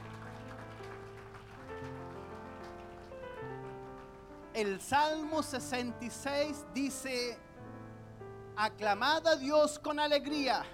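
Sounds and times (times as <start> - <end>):
applause: 0.0 - 4.5
speech: 4.6 - 7.5, 8.6 - 10.7.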